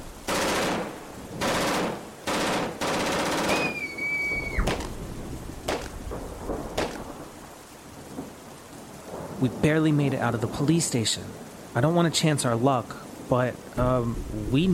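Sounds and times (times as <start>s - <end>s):
gunfire from people shooting at anything that moves: 0.3s - 3.8s, 4.6s - 4.9s, 5.7s - 6.0s, 6.7s - 7.1s
speech: 9.4s - 14.7s.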